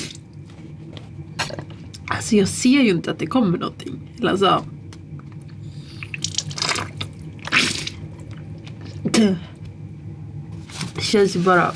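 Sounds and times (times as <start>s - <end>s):
low steady hum: 0.0s - 11.7s
speech: 2.2s - 4.8s, 9.2s - 9.5s, 11.0s - 11.7s
salt water dripping and splashing from a saline nasal rinse: 4.9s - 9.0s.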